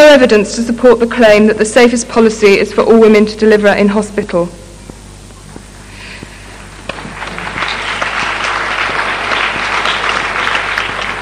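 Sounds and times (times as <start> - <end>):
speech: 0.2 - 4.6
audience clapping: 6.8 - 11.1.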